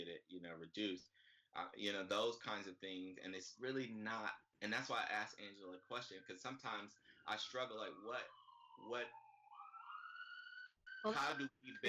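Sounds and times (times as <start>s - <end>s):
voice-like burst: 0.0s - 1.0s, 1.6s - 8.2s, 8.8s - 9.1s, 11.1s - 11.8s
speech: 0.0s - 9.2s, 11.0s - 11.8s
siren wailing: 4.8s - 11.8s.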